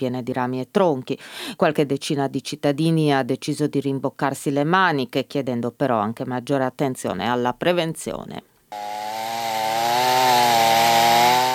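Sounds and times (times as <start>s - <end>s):
speech: 0.0s - 9.0s
chainsaw cutting wood: 8.7s - 11.5s.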